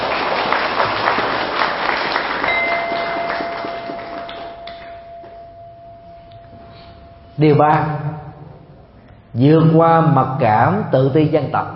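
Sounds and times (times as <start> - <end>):
audience applause: 0.0 - 5.0
speech: 7.4 - 8.1, 9.4 - 11.7.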